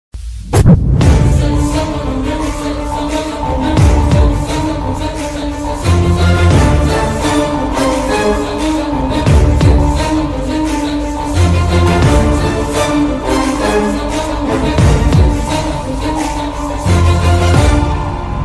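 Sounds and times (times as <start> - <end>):
fighting background music: 0.5 - 18.4.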